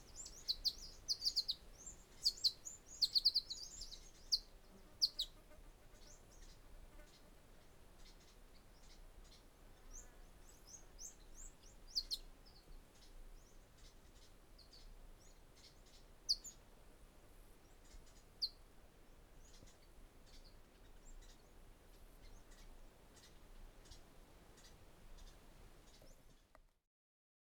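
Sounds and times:
birds of Bruny Island Australia: 0.0 - 16.7, 17.4 - 26.6.

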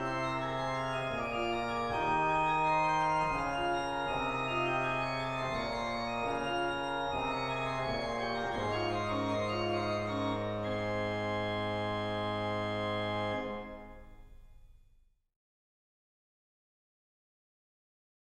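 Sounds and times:
organ chorale prelude: 0.0 - 14.2.

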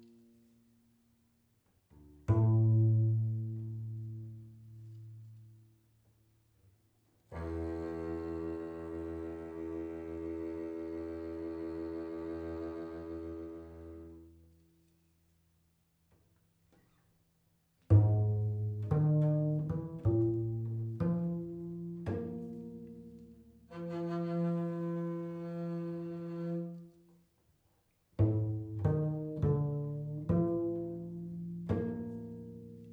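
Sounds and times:
prepared double bass: 1.9 - 5.7, 7.2 - 15.0, 17.8 - 27.2, 28.2 - 32.9.

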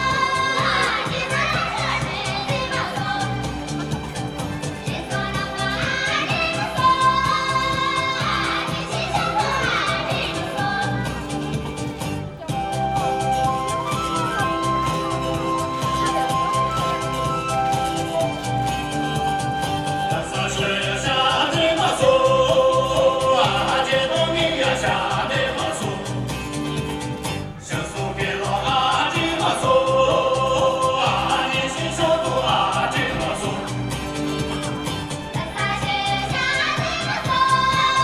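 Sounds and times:
dance music from China: 0.0 - 38.0.

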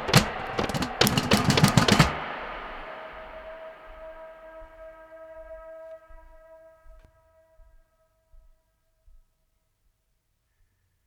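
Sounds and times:
percussion: 0.0 - 4.4.

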